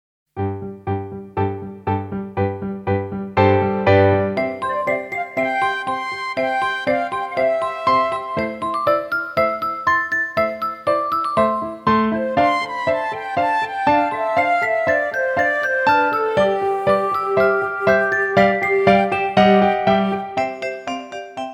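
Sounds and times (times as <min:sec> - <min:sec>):
ballet music for tendu jete: 0:00.4 - 0:21.5.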